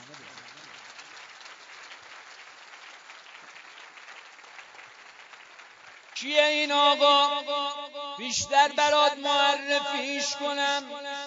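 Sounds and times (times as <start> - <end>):
audience clapping heartily: 0.0 - 7.3
speech: 6.2 - 11.2.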